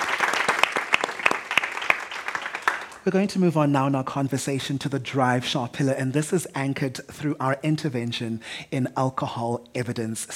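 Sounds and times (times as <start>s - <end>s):
audience applause: 0.0s - 3.1s
speech: 3.0s - 10.3s.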